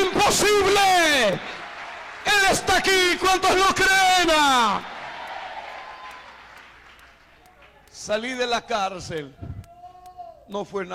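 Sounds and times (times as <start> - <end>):
speech: 0.3 - 1.6, 2.4 - 5.0, 8.0 - 9.5, 10.5 - 10.9
audience applauding: 0.5 - 8.1.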